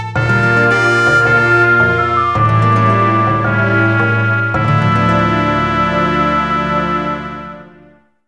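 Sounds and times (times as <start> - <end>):
quartet playing: 0.2 - 8.0.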